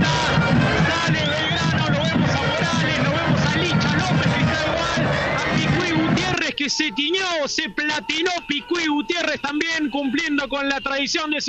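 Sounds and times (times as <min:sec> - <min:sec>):
football fans clapping, seeing off team bus: 0:00.0 - 0:06.5
speech: 0:06.8 - 0:11.4.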